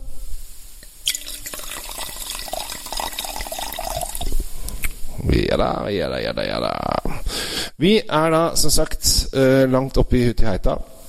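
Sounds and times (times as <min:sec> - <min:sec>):
wine pouring into a glass: 0:01.0 - 0:04.5
speech: 0:05.3 - 0:10.9.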